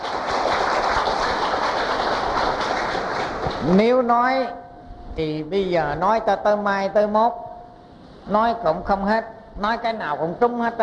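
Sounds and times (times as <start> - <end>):
crowd round of applause: 0.0 - 3.7
speech: 3.6 - 4.6, 5.2 - 7.4, 8.2 - 10.8.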